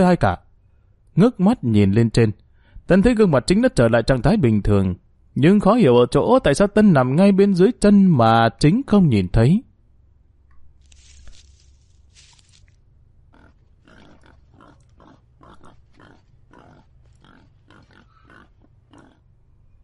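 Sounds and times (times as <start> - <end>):
speech: 0.0 - 0.4, 1.2 - 9.7
small wild boar crashing through brush: 10.7 - 18.1
small wild boar grunting and snorting: 13.3 - 19.3.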